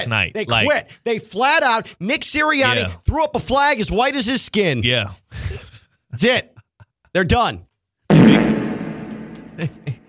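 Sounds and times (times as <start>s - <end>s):
speech: 0.0s - 6.5s, 7.1s - 8.6s, 9.6s - 10.0s
fart sound effect: 8.1s - 9.6s
laughter: 9.5s - 10.0s.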